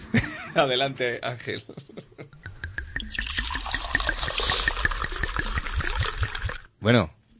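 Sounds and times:
speech: 0:00.6 - 0:01.9, 0:06.8 - 0:07.2
wine poured for a tasting: 0:02.4 - 0:06.7
wine bottle uncorked: 0:02.5 - 0:06.6.

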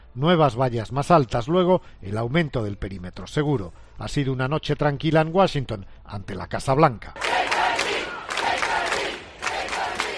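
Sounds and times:
speech: 0:00.2 - 0:07.5
protesters shouting at the National Guard: 0:07.2 - 0:10.1.

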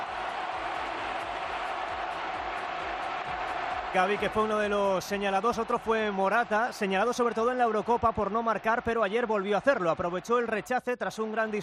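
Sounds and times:
stadium crowd at La Cartuja cheering a Spain player's performance: 0:00.0 - 0:11.6
speech: 0:03.9 - 0:11.6.

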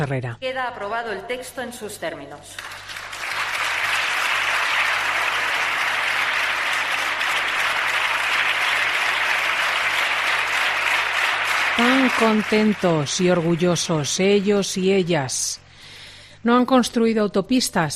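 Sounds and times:
speech: 0:00.0 - 0:02.8, 0:11.8 - 0:15.6, 0:16.4 - 0:17.9
parliamentarians applauding approval of euthanasia law: 0:02.6 - 0:15.3.

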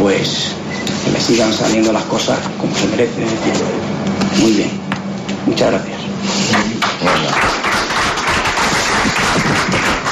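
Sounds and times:
speech: 0:00.1 - 0:04.9, 0:05.5 - 0:07.6
journalists applauding in the press room of the Alcoraz: 0:06.8 - 0:10.1.

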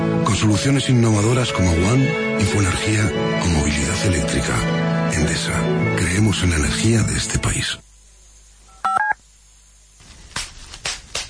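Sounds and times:
speech: 0:00.4 - 0:07.9
bubble wrap popping: 0:10.0 - 0:11.2.

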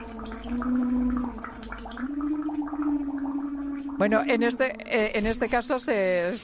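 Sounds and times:
person singing through a straw into water: 0:00.0 - 0:05.6
water bubbling: 0:00.0 - 0:06.0
speech: 0:04.0 - 0:06.4.

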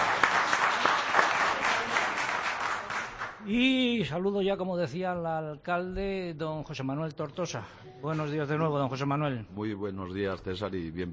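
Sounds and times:
audience applause for folk string band: 0:00.0 - 0:03.5
speech: 0:03.5 - 0:11.1.

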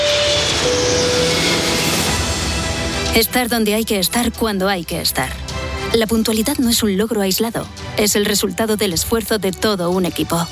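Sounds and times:
airplane taking off: 0:00.0 - 0:03.7
speech: 0:03.2 - 0:10.5.

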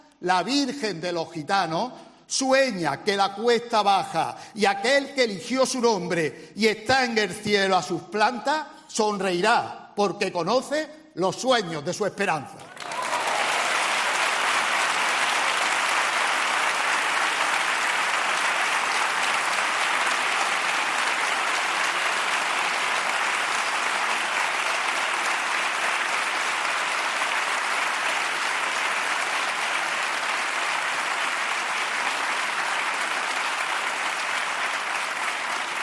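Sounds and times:
speech: 0:00.2 - 0:12.7
audience applause: 0:12.6 - 0:35.8.

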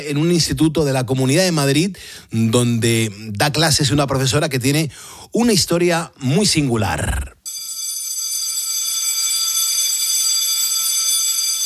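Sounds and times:
speech: 0:00.0 - 0:07.4
school bell ringing: 0:07.5 - 0:11.6.

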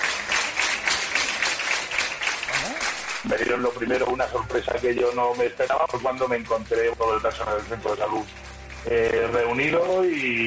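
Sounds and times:
applause from health centre staff: 0:00.0 - 0:10.4
speech: 0:03.2 - 0:10.4.

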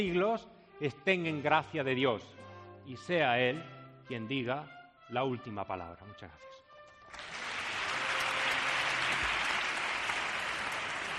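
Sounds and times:
speech: 0:00.0 - 0:07.3
audience ovation applause: 0:07.1 - 0:11.1.

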